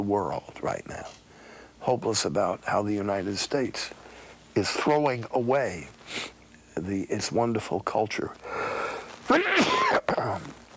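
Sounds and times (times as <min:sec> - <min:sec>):
speech: 0:00.0 - 0:01.2, 0:01.8 - 0:10.6
person sneezing: 0:09.3 - 0:10.6.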